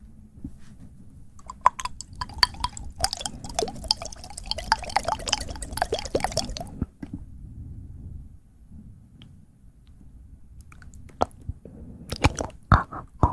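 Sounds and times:
fast wet mouth clicks and smacks: 0:01.4 - 0:06.9, 0:12.1 - 0:13.3.

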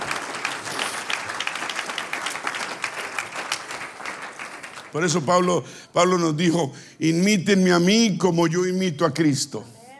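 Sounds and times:
applause: 0:00.0 - 0:05.6
speech: 0:04.9 - 0:09.8.

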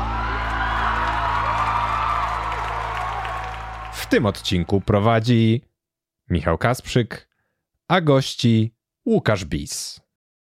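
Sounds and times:
whoops: 0:00.0 - 0:04.5
crowd applauding and cheering: 0:00.0 - 0:05.4
speech: 0:04.1 - 0:05.7, 0:06.3 - 0:07.3, 0:07.9 - 0:10.0.

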